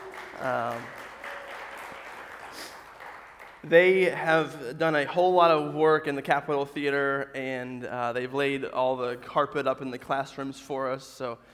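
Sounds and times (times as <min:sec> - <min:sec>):
church congregation applauding a visiting crew during a Sunday service: 0:00.0 - 0:04.2
speech: 0:00.4 - 0:01.0, 0:03.6 - 0:11.5.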